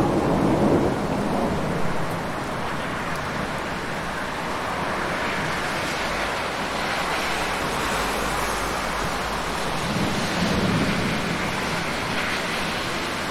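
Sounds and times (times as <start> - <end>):
heavy rain on wet road at night: 0.0 - 13.2
street traffic rumbling: 0.0 - 13.2.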